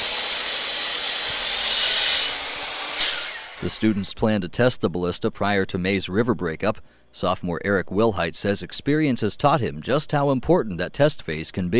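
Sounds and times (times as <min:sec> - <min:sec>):
woodcutting machine running with hissing roar: 0:00.0 - 0:04.1
speech: 0:03.6 - 0:11.7.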